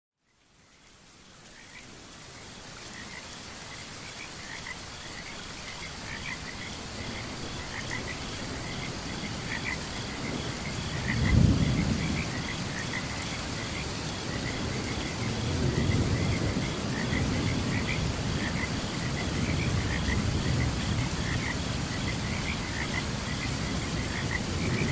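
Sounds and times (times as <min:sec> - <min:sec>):
frogs calling in a chorus: 0:00.2 - 0:24.8
heavy rain: 0:00.2 - 0:24.8
insect hum: 0:00.2 - 0:24.8
thunder rumble: 0:10.2 - 0:12.9, 0:14.4 - 0:24.8.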